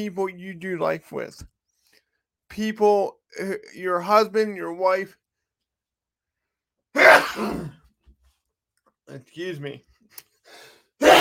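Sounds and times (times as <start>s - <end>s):
speech: 0.0s - 1.5s, 2.5s - 5.2s, 6.9s - 7.8s, 9.1s - 11.1s
person sneezing: 7.0s - 7.8s, 11.0s - 11.1s.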